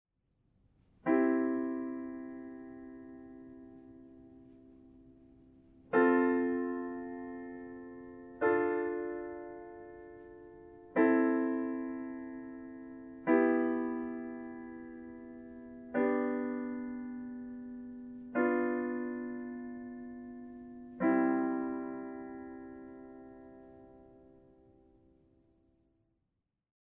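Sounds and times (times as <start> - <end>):
alternative minor chords: 1.0 - 25.2.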